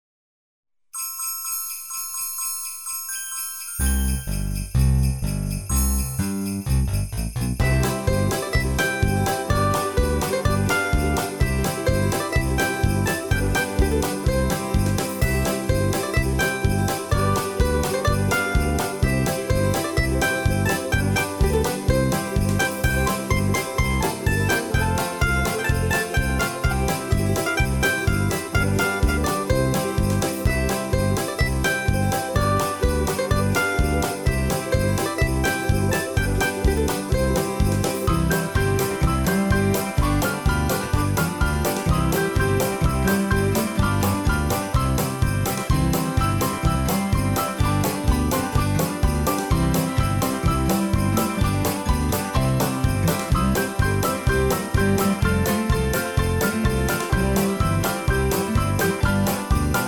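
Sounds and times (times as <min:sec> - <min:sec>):
bells: 0:01.0 - 0:59.8
square dance music: 0:05.7 - 0:59.8.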